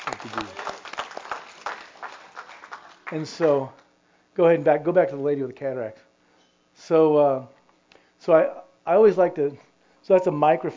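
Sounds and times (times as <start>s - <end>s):
faint scattered audience clapping: 0.0s - 3.9s
speech: 0.2s - 0.7s, 3.1s - 3.8s, 4.4s - 6.1s, 6.8s - 7.6s, 8.2s - 10.7s.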